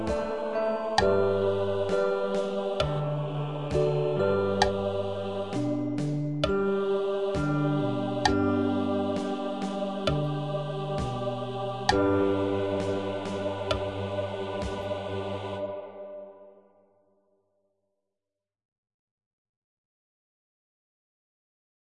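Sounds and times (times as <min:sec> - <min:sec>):
baritone singing slowly: 0:00.0 - 0:16.5.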